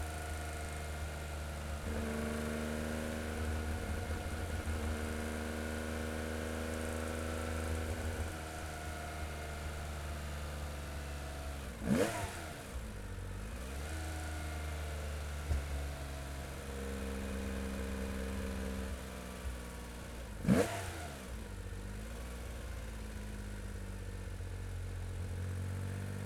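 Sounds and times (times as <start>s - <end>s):
1972 Porsche 911 ST engine driving fast, onboard: 0.1s - 26.2s.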